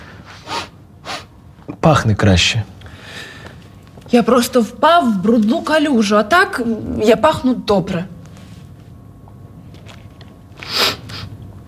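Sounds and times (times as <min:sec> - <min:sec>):
person sniffling through the nose: 0:00.2 - 0:01.3, 0:10.6 - 0:11.3
speech: 0:01.8 - 0:02.7, 0:04.1 - 0:08.1.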